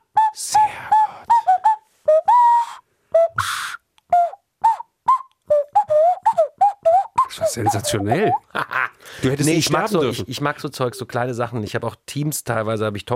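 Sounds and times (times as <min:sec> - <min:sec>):
plastic nose flute played with breath-formed tones: 0:00.0 - 0:08.5
speech: 0:07.6 - 0:13.1
laughter: 0:08.5 - 0:09.0.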